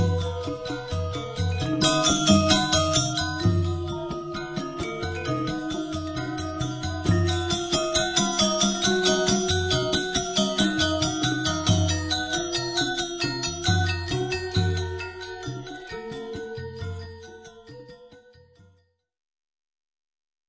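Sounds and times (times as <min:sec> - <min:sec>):
Semarpegulingan gamelan ensemble playing: 0:00.0 - 0:17.8.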